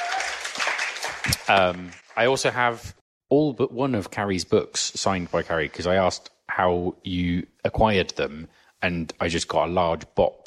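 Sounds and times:
audience applause: 0.0 - 2.5
speech: 1.5 - 10.4.

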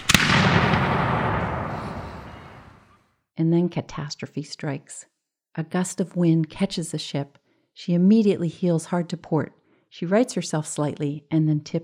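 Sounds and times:
ship's cannon salute being fired: 0.0 - 2.8
speech: 3.4 - 11.8.

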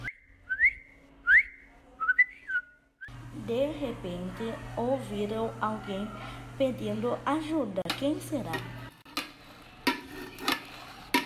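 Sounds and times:
whistled imitation of birdsong: 0.0 - 3.1
speech: 3.5 - 8.8.

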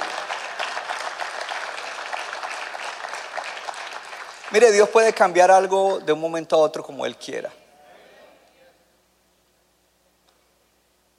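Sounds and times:
audience applause: 0.0 - 5.8
speech: 4.5 - 7.6.

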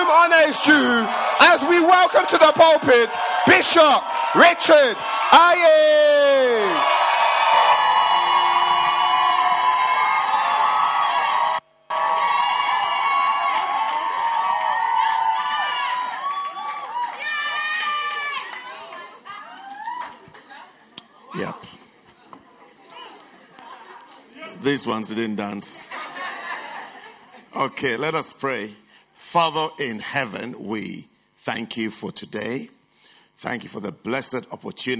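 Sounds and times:
church congregation cheering and making noise: 0.0 - 20.3
crowd shouting and whooping: 0.0 - 20.4
speech: 0.2 - 6.9, 24.7 - 26.0, 27.6 - 32.8, 33.4 - 34.9
laughter: 25.7 - 27.7.

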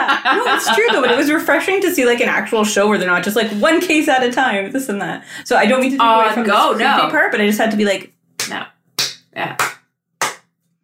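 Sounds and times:
laughter: 0.0 - 1.8
speech: 0.3 - 8.7, 9.4 - 9.8
slow golf clap from a single person: 8.4 - 10.6.

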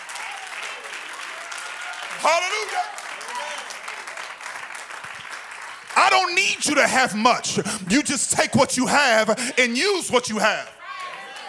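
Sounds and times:
audience clapping: 0.0 - 11.4
speech: 2.2 - 3.0, 6.0 - 10.8.

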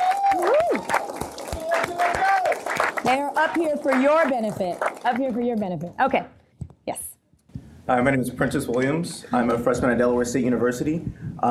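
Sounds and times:
crowd cheering whoop or whistle: 0.0 - 2.6
audience applause: 0.0 - 5.9
speech: 3.1 - 7.1, 7.9 - 11.4.

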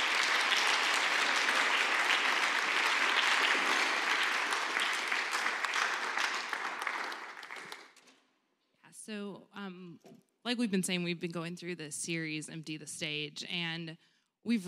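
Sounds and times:
audience applause: 0.0 - 8.0
speech: 9.1 - 14.6.

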